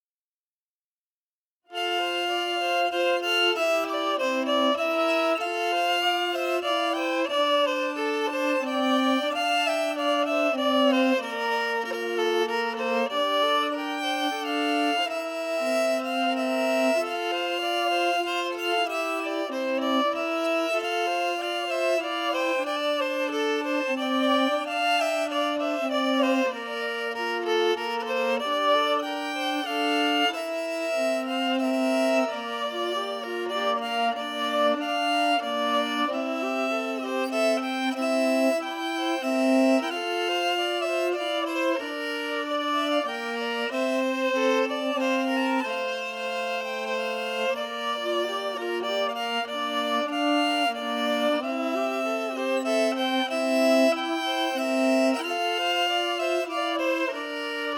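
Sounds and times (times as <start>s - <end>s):
emphasized musical harmony: 1.8s - 57.7s.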